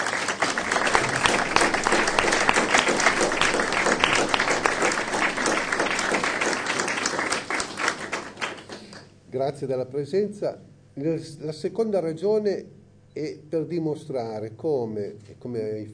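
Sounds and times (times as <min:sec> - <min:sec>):
audience applause: 0:00.0 - 0:09.1
speech: 0:09.4 - 0:15.9.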